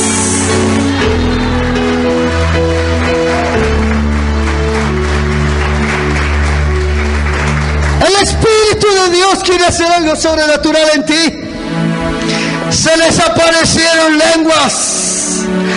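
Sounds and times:
audience clapping: 0.0 - 10.0
sustained keyboard or organ chords: 0.0 - 15.7
speech: 9.1 - 11.4, 12.7 - 15.7.

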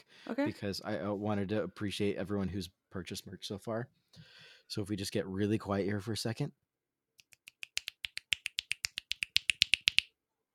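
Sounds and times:
speech: 0.3 - 6.6
finger snapping as thank-you snaps: 7.2 - 10.1.

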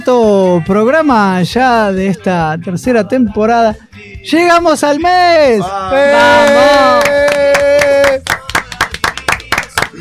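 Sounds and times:
speech: 0.0 - 7.3
sharp hand claps from a small group: 6.4 - 9.9.

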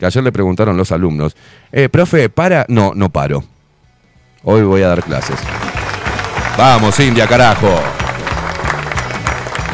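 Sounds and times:
speech: 0.0 - 3.5, 4.4 - 5.8, 6.6 - 8.1
applause: 5.0 - 9.7.

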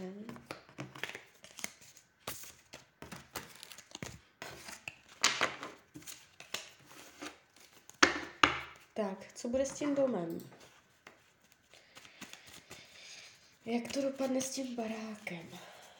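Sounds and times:
cards being shuffled and laid out: 0.3 - 8.0, 10.6 - 15.2
speech: 9.0 - 10.6, 13.7 - 15.7.

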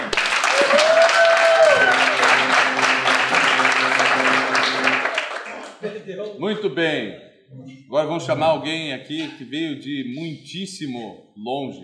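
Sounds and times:
audience applause: 0.0 - 5.8
speech: 6.4 - 11.8.

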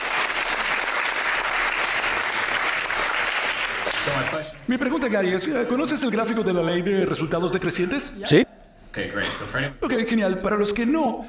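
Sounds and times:
audience applause: 0.0 - 4.5
speech: 4.1 - 11.2.

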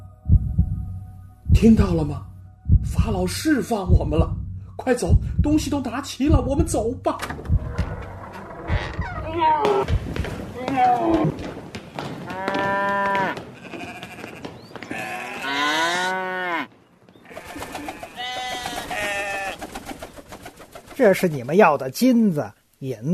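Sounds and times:
speech: 1.6 - 7.6, 9.4 - 11.4, 21.0 - 23.1
cattle mooing: 12.3 - 14.3, 15.0 - 16.7, 18.0 - 19.6
sheep bleating: 12.3 - 19.6.

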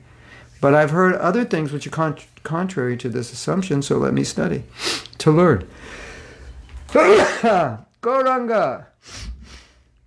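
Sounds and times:
speech: 0.6 - 6.1, 6.9 - 9.3
sneeze: 6.9 - 7.8.

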